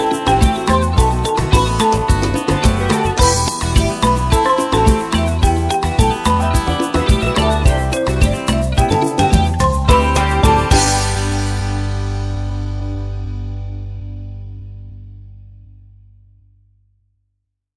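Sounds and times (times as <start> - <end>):
calypso music on mallet bars: 0.0 - 12.9.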